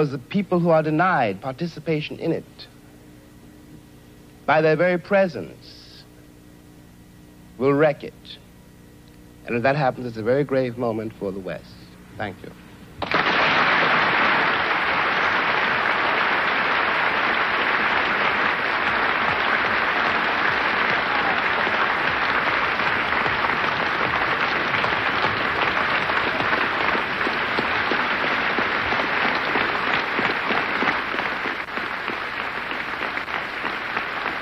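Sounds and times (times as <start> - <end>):
speech: 0.0 - 2.7, 4.5 - 5.8, 7.6 - 8.4, 9.5 - 12.6
standing audience applauding a speech: 13.0 - 34.4.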